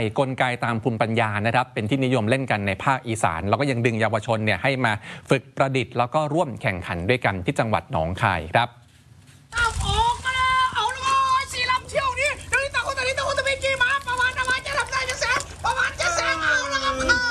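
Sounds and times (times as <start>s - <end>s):
speech: 0.0s - 8.8s
children cheering at toy boat race: 10.3s - 17.3s.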